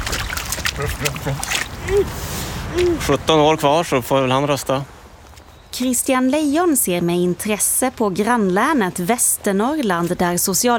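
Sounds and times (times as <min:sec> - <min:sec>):
rubber boots splashing into a water puddle: 0:00.0 - 0:02.2
person chattering: 0:00.7 - 0:03.3
speech: 0:00.8 - 0:05.0, 0:05.7 - 0:10.7.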